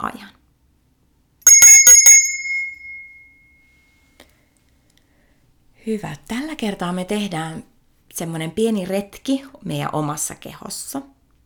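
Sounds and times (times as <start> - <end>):
speech: 0.0 - 0.4, 5.8 - 11.2
small bell rung to start an exercise: 1.5 - 3.6.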